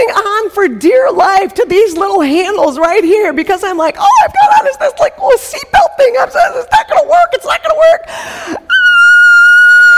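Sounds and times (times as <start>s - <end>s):
speech: 0.6s - 8.9s
person screaming on a drop ride: 8.7s - 9.9s.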